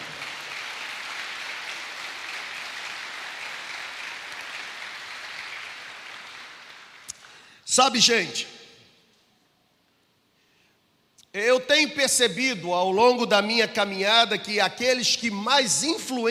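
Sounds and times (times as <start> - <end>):
audience applause: 0.0 - 7.1
speech: 7.7 - 8.5, 12.0 - 16.2.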